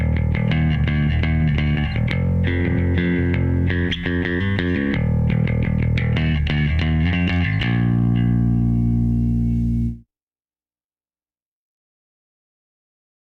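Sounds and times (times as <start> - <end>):
bass: 0.0 - 10.0.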